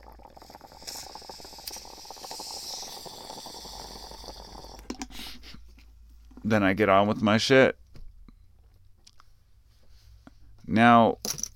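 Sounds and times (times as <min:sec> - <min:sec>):
bubbling water of a silicone bong hit: 0:00.0 - 0:05.2
breathy bursts: 0:00.2 - 0:05.6
speech: 0:06.4 - 0:07.8, 0:10.8 - 0:11.2.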